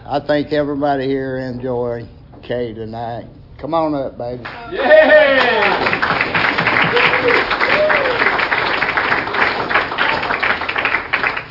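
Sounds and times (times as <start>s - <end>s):
speech: 0.1s - 6.3s, 6.9s - 7.5s
audience applause and clapping: 4.8s - 11.4s.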